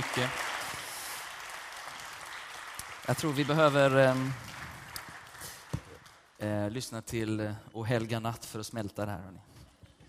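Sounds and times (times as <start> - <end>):
audience applause: 0.0 - 6.3
speech: 0.2 - 0.5, 3.1 - 4.5, 6.4 - 9.5.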